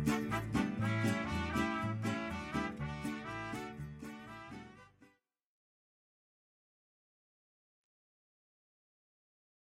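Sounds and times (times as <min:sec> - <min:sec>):
mariachi music: 0:00.0 - 0:05.3.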